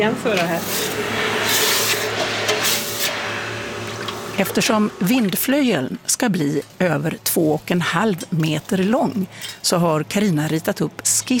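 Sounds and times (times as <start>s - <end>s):
speech: 0.0s - 1.6s, 4.4s - 11.3s
low hum: 0.0s - 11.3s
hot metal hissing when quenched in water: 0.4s - 4.9s.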